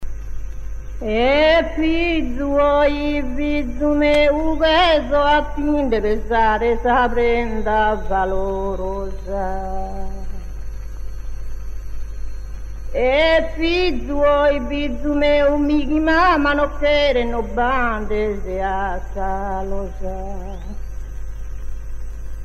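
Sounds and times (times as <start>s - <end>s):
unaccompanied monodic chant: 1.0s - 10.7s, 12.9s - 20.9s.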